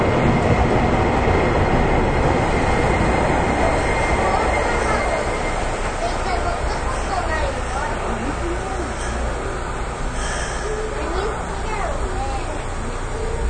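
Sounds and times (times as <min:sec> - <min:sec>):
JR Kyushu 813 series local train on the Nippou line rumbling: 0:00.0 - 0:13.4
faint voices: 0:02.6 - 0:13.4.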